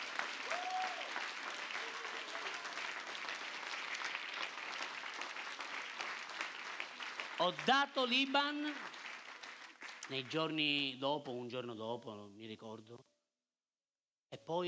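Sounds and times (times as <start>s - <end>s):
audience applause: 0.0s - 10.4s
speech: 7.4s - 8.9s, 10.1s - 13.1s, 14.5s - 14.6s.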